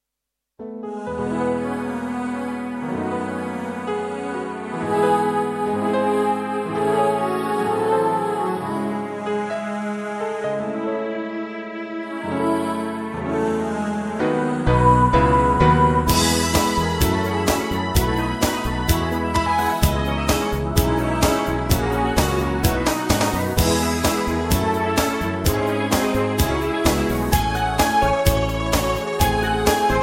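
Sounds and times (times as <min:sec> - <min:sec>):
instrumental music: 0:00.6 - 0:30.0.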